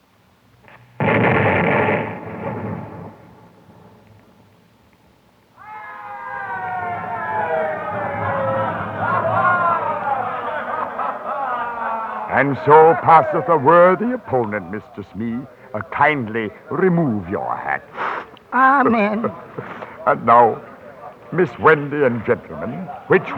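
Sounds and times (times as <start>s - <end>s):
cartoon bomb exploding in a cave: 0.8s - 4.8s
wavering siren-like wailing tones: 5.6s - 14.2s
laughter: 5.9s - 23.3s
speech: 12.4s - 18.0s, 18.6s - 20.7s, 21.3s - 23.3s.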